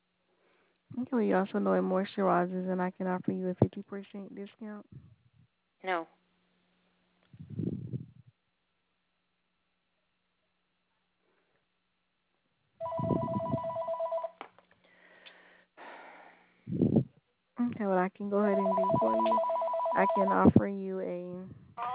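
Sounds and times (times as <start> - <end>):
speech: 1.0 - 5.2, 5.8 - 6.2, 17.8 - 21.9
telephone ringing: 12.8 - 14.4, 18.5 - 20.6.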